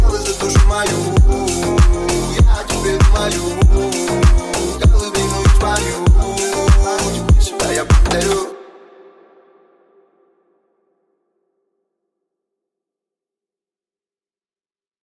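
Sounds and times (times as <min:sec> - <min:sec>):
remix music: 0:00.0 - 0:08.8.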